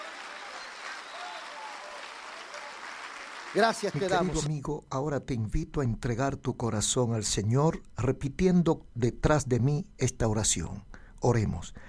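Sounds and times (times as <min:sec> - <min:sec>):
audience applauding: 0:00.0 - 0:04.5
speech: 0:03.5 - 0:11.8.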